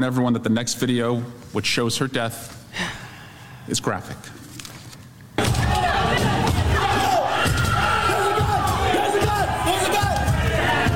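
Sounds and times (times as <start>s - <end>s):
speech: 0.0s - 3.0s, 3.7s - 4.4s
crowd of rioters shouting at chamber door: 5.4s - 10.9s.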